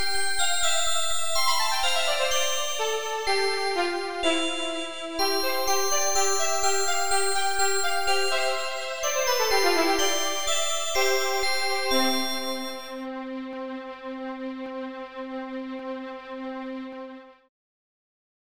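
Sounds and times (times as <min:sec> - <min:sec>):
glockenspiel: 0:00.0 - 0:13.1
violin: 0:00.0 - 0:17.5.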